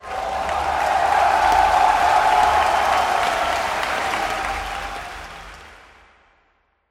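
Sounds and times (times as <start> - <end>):
people cheering: 0.0 - 6.0.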